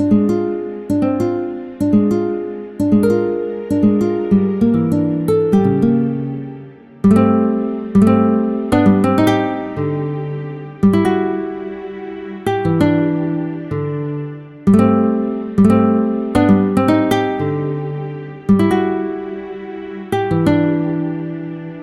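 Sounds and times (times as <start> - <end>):
classical guitar recital: 0.0 - 21.8.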